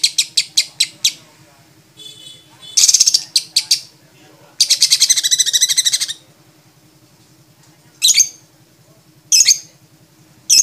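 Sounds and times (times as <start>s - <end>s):
lovebird song: 0.0s - 1.2s, 2.6s - 3.9s, 4.6s - 6.2s, 8.0s - 8.5s, 9.3s - 9.8s, 10.5s - 10.6s
faint low hum: 0.0s - 10.6s.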